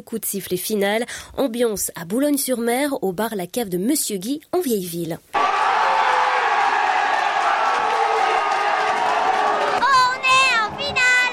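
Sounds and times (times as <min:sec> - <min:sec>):
speech: 0:00.0 - 0:05.5
football fans celebrating in a packed bar: 0:05.4 - 0:11.3.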